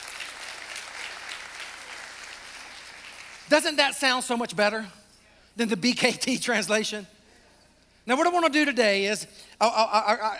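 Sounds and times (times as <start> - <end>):
audience clapping: 0.0 - 3.5
speech: 3.5 - 5.0, 5.6 - 7.1, 8.0 - 10.3.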